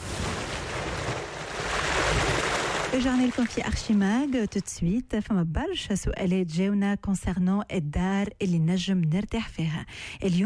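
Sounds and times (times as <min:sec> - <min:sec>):
ocean waves: 0:00.0 - 0:04.8
speech: 0:02.9 - 0:10.4.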